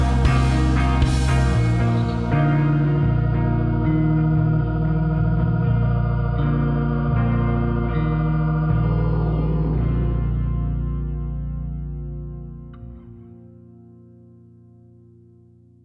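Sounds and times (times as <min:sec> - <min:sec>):
drums: 0:00.0 - 0:02.7
bass: 0:00.0 - 0:15.8
emo guitars: 0:00.0 - 0:15.8.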